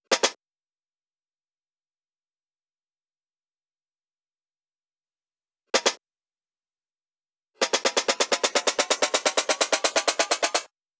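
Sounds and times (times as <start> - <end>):
drum loop: 7.6 - 10.7
snare fill: 7.6 - 10.7.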